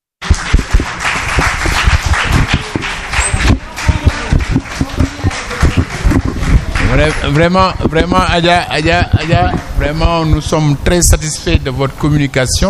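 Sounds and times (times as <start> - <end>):
sustained audience applause: 0.2 - 7.8
speech: 7.0 - 12.6.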